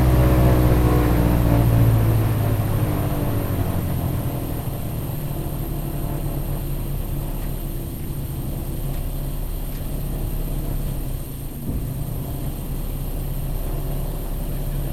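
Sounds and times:
Lockheed Hudson twin engine light bomber preflight interior: 0.0 - 14.9.

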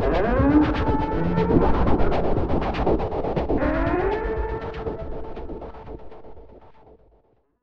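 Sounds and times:
deep horn moan pulse wash bed: 0.1 - 5.3.

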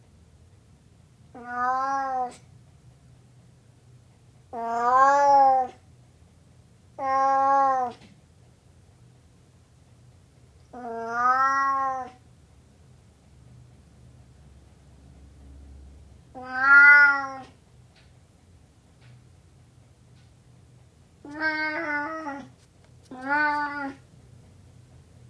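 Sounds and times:
Burmese cat meowing: 1.3 - 2.4, 4.5 - 5.8, 7.0 - 8.0, 10.7 - 12.2, 16.3 - 17.6, 21.2 - 22.5, 23.1 - 24.0.

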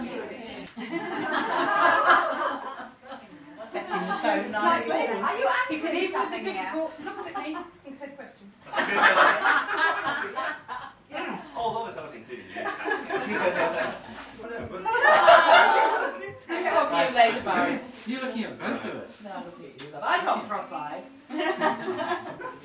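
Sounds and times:
small group of mostly girls chatting at a party: 0.0 - 2.2, 3.1 - 22.6
small group of mostly girls laughing at a party: 0.0 - 4.8, 8.7 - 11.0, 12.3 - 16.8, 21.3 - 22.6.

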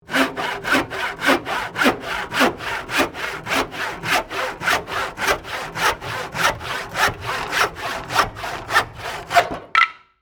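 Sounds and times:
saw cross cutting wood: 0.0 - 9.7
cut wood piece falling: 9.4 - 10.1.

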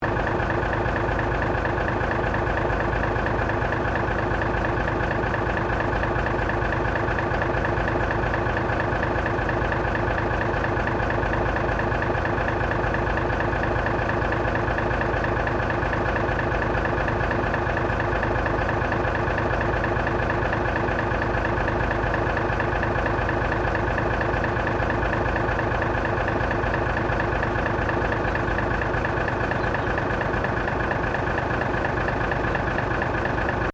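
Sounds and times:
1950 DP50 diesel railcar idling in Tasmania: 0.0 - 33.7.

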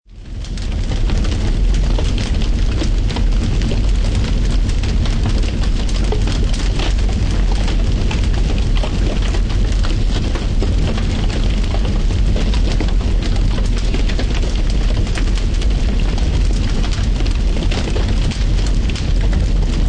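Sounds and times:
heavy forest wildfire burning trees and growth with large flames: 0.1 - 19.8.

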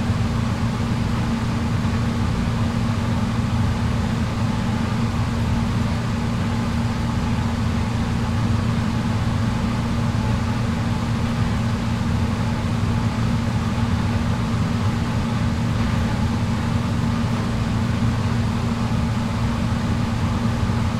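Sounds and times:
indoor jacuzzi room tone with jets off: 0.0 - 20.9.

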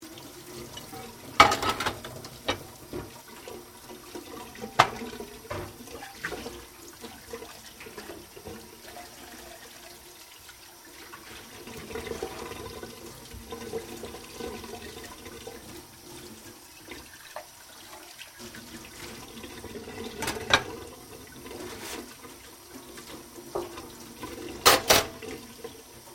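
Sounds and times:
dishes being washed: 0.0 - 26.1
running water: 0.0 - 26.1.

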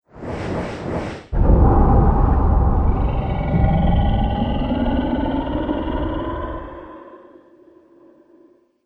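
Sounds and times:
monster dragon roaring: 1.4 - 8.6.

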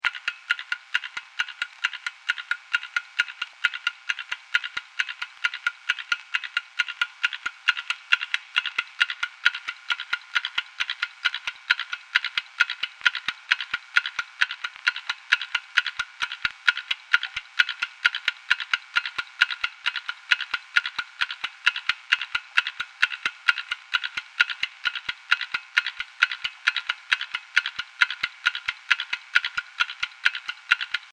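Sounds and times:
vintage grandfather clock ticking: 0.0 - 31.1.

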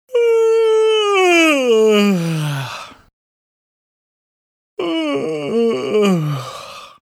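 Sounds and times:
various male yawns: 0.1 - 3.0, 4.8 - 7.0.

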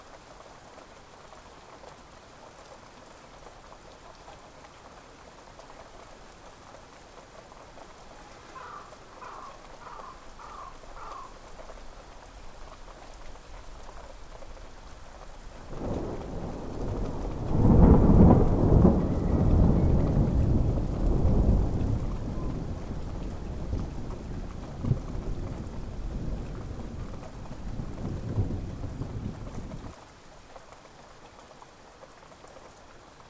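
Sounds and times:
light rain: 0.0 - 33.2
thunder: 15.7 - 29.9.

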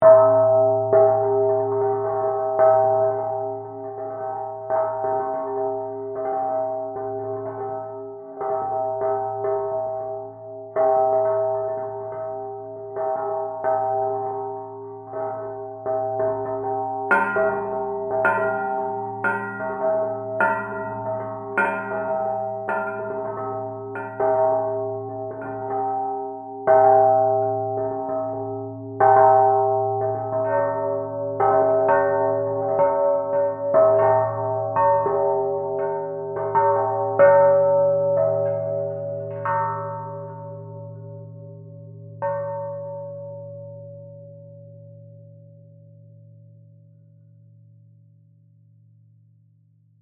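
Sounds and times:
low eerie musical bell chimes: 0.0 - 48.8.

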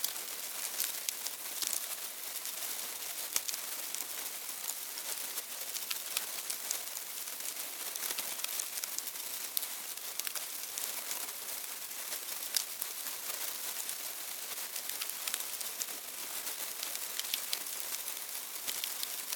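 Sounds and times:
termites eating in a hive: 0.0 - 19.3
termites moving in a hive: 0.0 - 19.3.

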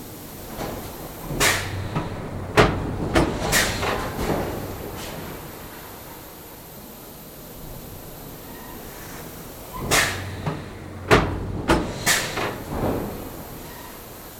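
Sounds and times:
pneumatic hiss: 0.2 - 6.9, 8.1 - 14.3
pneumatic factory press stamping: 0.5 - 5.4, 9.0 - 14.0.

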